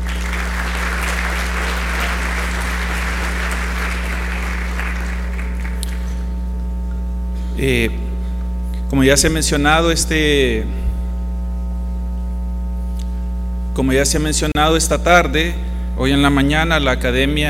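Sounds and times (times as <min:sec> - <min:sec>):
audience applause: 0:00.0 - 0:06.2
low hum: 0:00.0 - 0:17.4
speech: 0:07.6 - 0:08.0, 0:08.9 - 0:10.8, 0:13.8 - 0:17.4.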